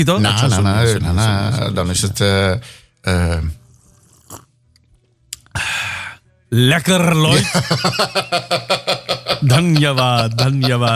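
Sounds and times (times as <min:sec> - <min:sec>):
speech: 0:00.0 - 0:03.6, 0:06.5 - 0:10.9
loud slurp of coffee: 0:03.7 - 0:04.6
laughter: 0:07.3 - 0:10.9.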